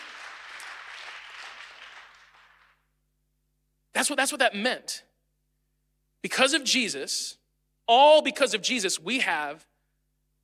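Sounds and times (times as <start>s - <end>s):
audience clapping: 0.0s - 2.9s
speech: 4.0s - 5.1s, 6.2s - 9.7s.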